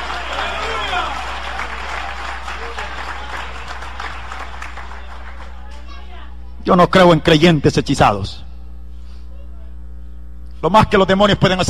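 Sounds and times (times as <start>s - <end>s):
audience applause: 0.0s - 5.7s
speech: 6.7s - 8.5s, 10.6s - 11.6s.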